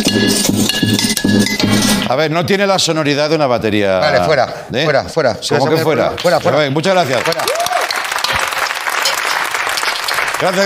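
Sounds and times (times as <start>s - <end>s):
speech: 0.2s - 0.8s, 2.1s - 7.7s, 10.4s - 10.6s
audience applause: 6.2s - 10.6s.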